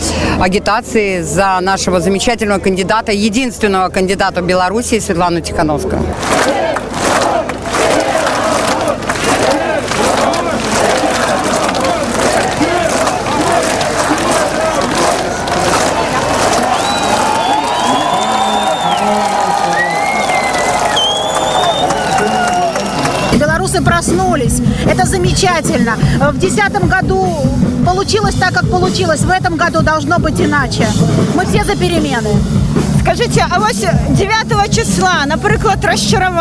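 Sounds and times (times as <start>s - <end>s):
speech: 0.4s - 6.8s, 24.0s - 36.4s
large crowd chanting and shouting at a political rally: 5.8s - 36.4s
shrill whistles: 16.7s - 23.4s.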